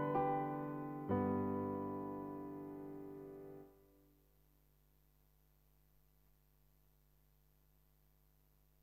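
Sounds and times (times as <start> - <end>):
solo piano: 0.0 - 3.9.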